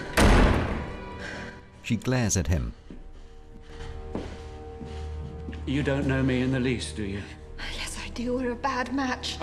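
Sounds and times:
bedroom door being shut in a drama: 0:00.1 - 0:00.9
speech: 0:01.9 - 0:02.9, 0:05.7 - 0:07.4, 0:08.2 - 0:09.3.

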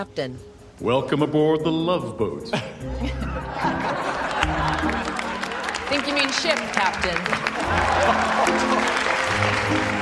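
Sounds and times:
speech: 0:00.0 - 0:05.1, 0:05.9 - 0:10.0
laughter: 0:02.5 - 0:10.0
applause during a drama scene aboard a ship: 0:04.2 - 0:10.0.

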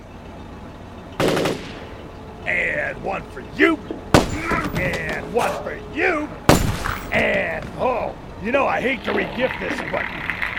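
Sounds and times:
rapid gunfire: 0:01.2 - 0:01.8
speech: 0:02.5 - 0:04.0, 0:04.7 - 0:06.4, 0:07.1 - 0:10.3.

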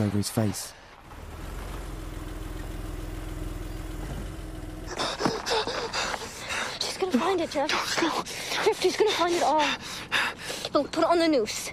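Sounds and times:
speech: 0:00.0 - 0:00.8, 0:07.1 - 0:11.7
car engine humming as it arrives at a house: 0:00.8 - 0:08.6.

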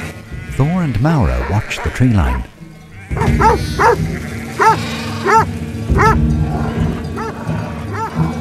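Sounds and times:
speech: 0:00.6 - 0:06.3
dogs barking: 0:01.2 - 0:06.2, 0:07.2 - 0:08.3.

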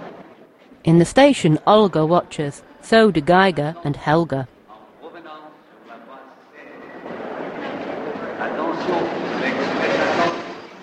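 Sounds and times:
speech: 0:00.8 - 0:04.6
express train pulling into a station: 0:05.7 - 0:10.8.

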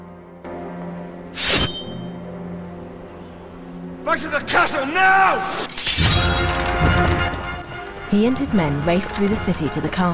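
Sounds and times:
sword drawn from its sheath: 0:01.4 - 0:02.0
speech: 0:04.1 - 0:07.1, 0:08.1 - 0:10.1.

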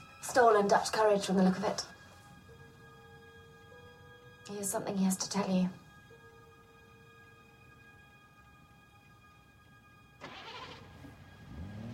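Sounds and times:
speech: 0:00.3 - 0:02.0, 0:04.5 - 0:05.8
car engine starting: 0:10.2 - 0:11.9.

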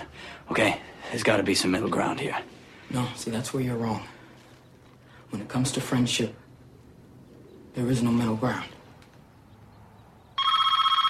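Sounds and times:
speech: 0:00.5 - 0:04.2, 0:05.3 - 0:06.4, 0:07.8 - 0:08.8
telephone bell ringing: 0:10.4 - 0:11.0.

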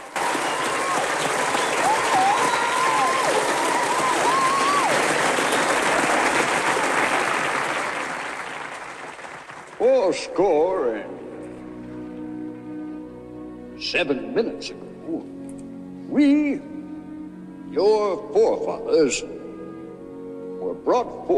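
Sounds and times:
audience clapping at a stage show: 0:00.0 - 0:10.2
speech: 0:10.1 - 0:11.2, 0:13.9 - 0:15.4, 0:16.1 - 0:16.7, 0:17.8 - 0:19.4, 0:20.8 - 0:21.3.

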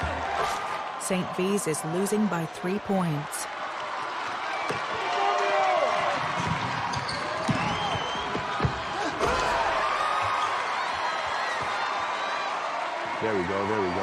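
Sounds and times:
crowd cheering at a basketball game involving a St. Vincent team: 0:00.0 - 0:14.0
speech: 0:01.1 - 0:03.5, 0:13.3 - 0:14.0.

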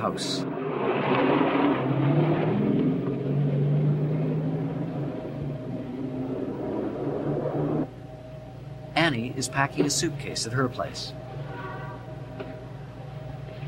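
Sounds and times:
speech: 0:00.0 - 0:00.6, 0:09.4 - 0:11.2
car engine driving off: 0:00.5 - 0:07.9.

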